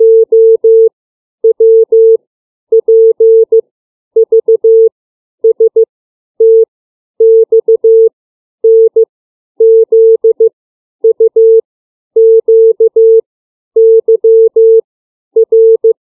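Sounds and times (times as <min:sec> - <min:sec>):
CW Morse code beeps of the alphabet: 0:00.0 - 0:00.9, 0:01.5 - 0:02.2, 0:02.8 - 0:03.6, 0:04.2 - 0:04.9, 0:06.4 - 0:06.6, 0:07.2 - 0:08.1, 0:08.7 - 0:09.0, 0:09.6 - 0:10.5, 0:11.2 - 0:11.6, 0:12.2 - 0:13.2, 0:13.8 - 0:14.8, 0:15.4 - 0:15.9.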